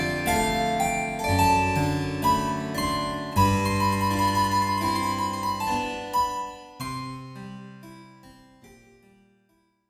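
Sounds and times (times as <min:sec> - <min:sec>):
harp: 0:00.0 - 0:07.5.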